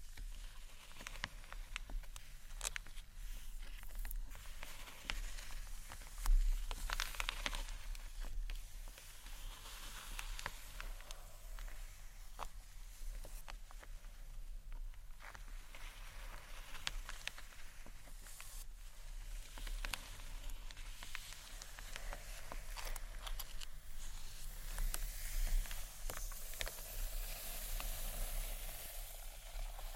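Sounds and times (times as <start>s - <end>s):
faint steady hiss: 0.0s - 29.9s
gentle scratching and tapping on books: 0.0s - 29.9s.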